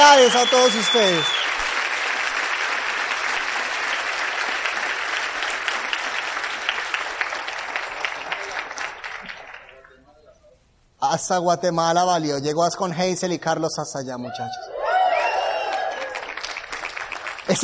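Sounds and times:
audience applause: 0.0s - 10.0s, 14.9s - 17.6s
speech: 0.1s - 1.5s, 11.1s - 14.7s.

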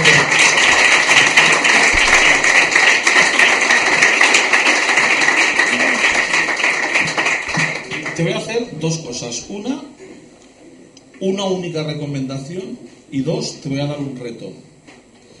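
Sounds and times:
crowd applause: 0.0s - 8.4s
speech: 8.8s - 9.9s, 11.2s - 14.7s.

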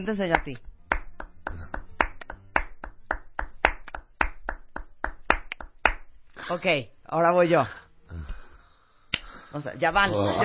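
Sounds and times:
speech: 0.0s - 0.7s, 6.5s - 8.3s, 9.5s - 10.4s
hands clapping: 0.0s - 6.2s.

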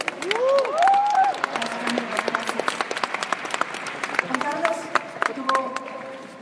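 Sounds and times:
audience applause: 0.0s - 6.2s
whoop: 0.2s - 1.5s.

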